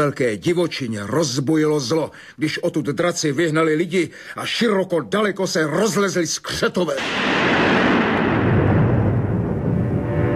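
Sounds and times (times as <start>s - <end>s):
speech: 0.0s - 7.8s
thunder rumbling in a storm: 7.0s - 10.3s.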